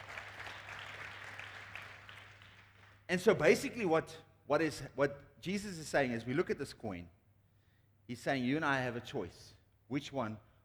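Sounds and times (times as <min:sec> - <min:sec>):
audience clapping: 0:00.0 - 0:03.1
speech: 0:03.1 - 0:07.2, 0:08.1 - 0:10.5.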